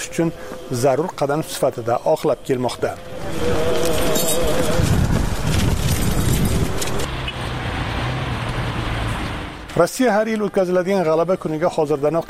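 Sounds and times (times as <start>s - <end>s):
speech: 0.0s - 3.7s, 9.8s - 12.2s
military convoy of vehicles carrying missiles on the road toward Moscow: 0.0s - 12.2s.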